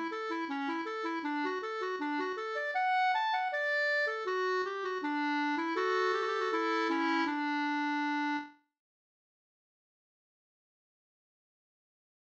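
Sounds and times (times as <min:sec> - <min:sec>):
folk walking tune: 0:00.0 - 0:08.6.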